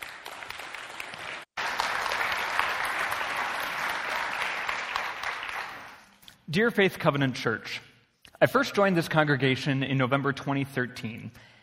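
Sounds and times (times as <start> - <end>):
crowd applause: 0.0 - 6.1
speech: 6.5 - 11.5.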